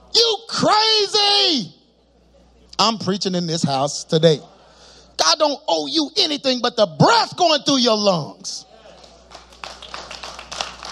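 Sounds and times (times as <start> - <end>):
speech: 0.6 - 1.8, 2.8 - 4.6, 5.2 - 8.7
thin hand claps from small audience: 9.3 - 10.9.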